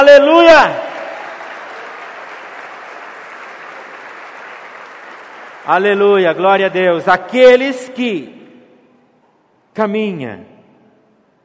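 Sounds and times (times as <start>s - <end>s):
speech: 0.2s - 0.9s, 5.7s - 8.4s, 9.8s - 10.5s
audience applauding: 0.4s - 6.2s.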